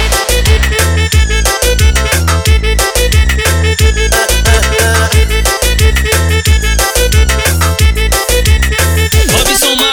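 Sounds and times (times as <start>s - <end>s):
computer saxophone: 0.2s - 9.8s.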